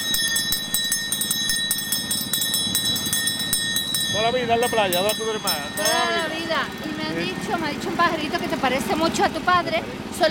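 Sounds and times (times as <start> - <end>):
ice cream vendor's hand bell shaken rapidly: 0.0 - 6.9
speech: 4.1 - 10.2.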